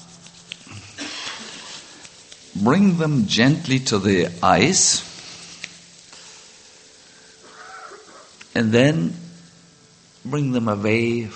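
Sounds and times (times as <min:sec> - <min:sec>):
hands rubbing together: 0:00.0 - 0:08.6
speech: 0:02.6 - 0:05.1, 0:08.6 - 0:09.2, 0:10.2 - 0:11.3.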